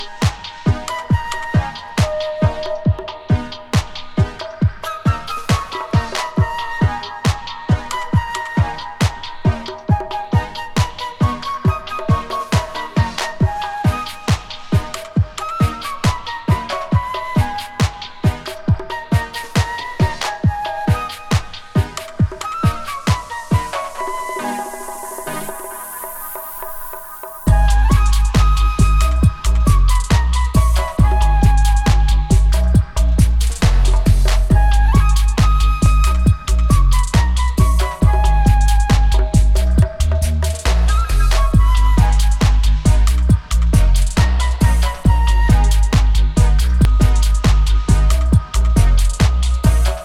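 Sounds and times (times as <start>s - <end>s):
flute: 0.0s - 50.0s.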